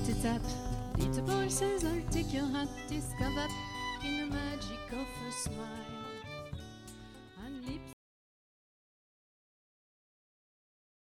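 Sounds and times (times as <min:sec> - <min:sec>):
songs: 0:00.0 - 0:07.9.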